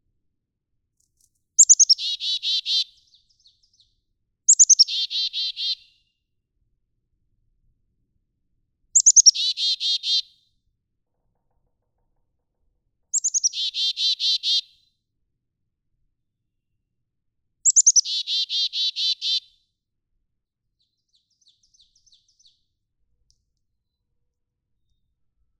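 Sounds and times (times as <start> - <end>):
black-capped chickadee chick-a-dee call: 1.6 - 3.0, 4.5 - 5.9, 9.0 - 10.3, 13.2 - 14.7, 17.7 - 19.5.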